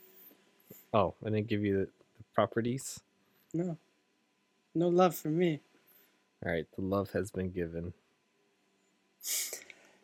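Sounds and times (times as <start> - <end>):
speech: 0.7 - 3.8, 4.8 - 5.7, 6.4 - 8.0, 9.2 - 9.6
person sneezing: 9.2 - 9.7
person sniffing: 9.2 - 10.0.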